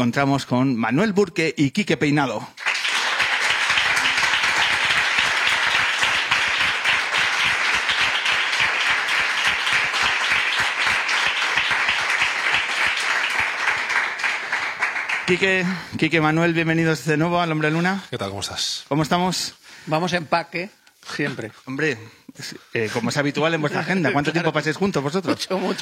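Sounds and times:
speech: 0:00.0 - 0:02.6, 0:15.3 - 0:25.8
audience applause: 0:02.6 - 0:15.8.

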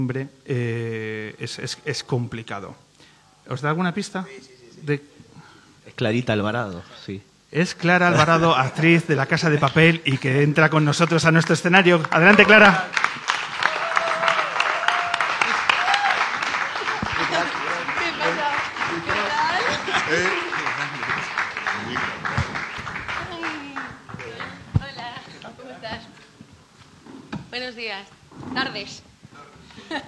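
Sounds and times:
speech: 0:00.0 - 0:02.9, 0:03.5 - 0:05.2, 0:06.0 - 0:13.2
laughter: 0:08.1 - 0:10.2, 0:15.3 - 0:23.6, 0:29.7 - 0:30.0
audience applause: 0:10.9 - 0:25.2
crowd voices and cheers: 0:12.2 - 0:13.0, 0:13.6 - 0:24.7.

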